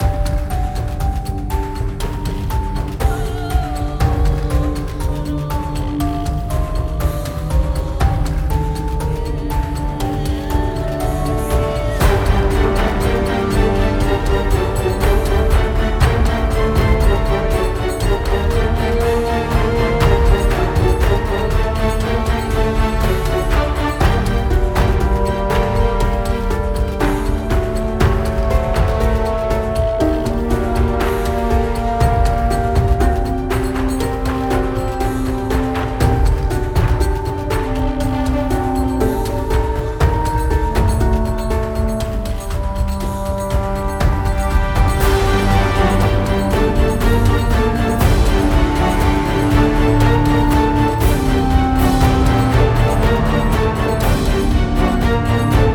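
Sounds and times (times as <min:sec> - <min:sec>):
high-energy action music: 0:00.0 - 0:55.7.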